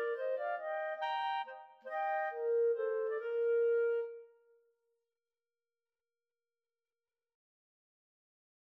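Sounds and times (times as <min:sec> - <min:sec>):
clarinet trio: 0:00.0 - 0:04.3.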